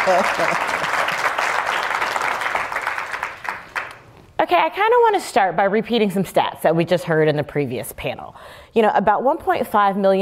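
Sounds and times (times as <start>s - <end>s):
speech: 0.0s - 0.9s, 4.4s - 10.2s
audience applause for guests: 0.0s - 4.0s.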